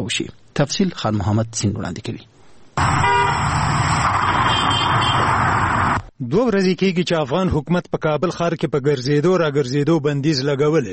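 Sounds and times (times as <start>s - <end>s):
speech: 0.0s - 3.1s, 6.2s - 10.9s
car horn toot: 2.8s - 5.4s
busy street traffic in Kabul's market area: 2.8s - 6.1s.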